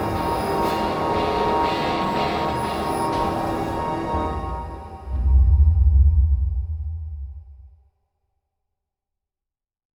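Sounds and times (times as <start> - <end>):
ambient fight theme music: 0.0 - 7.7.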